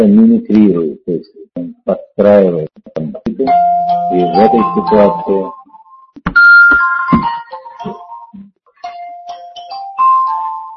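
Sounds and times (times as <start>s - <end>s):
speech: 0.0s - 5.6s
mobile phone ringing with a bright electronic melody: 3.5s - 10.7s.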